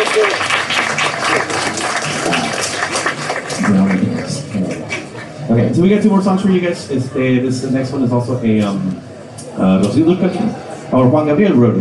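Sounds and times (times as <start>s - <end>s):
voices and cheers: 0.0s - 2.7s
crowd applauding: 0.0s - 5.2s
speech: 5.5s - 11.7s.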